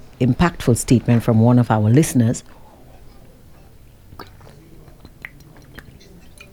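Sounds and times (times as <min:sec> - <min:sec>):
speech: 0:00.2 - 0:02.6
person sipping water to wet throat: 0:04.1 - 0:06.5.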